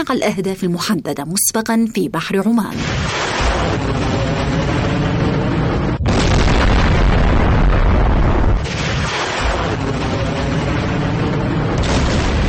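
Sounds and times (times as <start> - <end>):
speech: 0.0 - 4.1
ballistic missile launch: 2.8 - 12.4.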